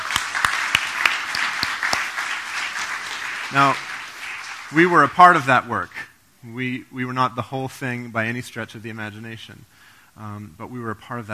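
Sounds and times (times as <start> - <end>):
audience applause: 0.0 - 5.2
speech: 3.5 - 3.9, 4.7 - 11.3.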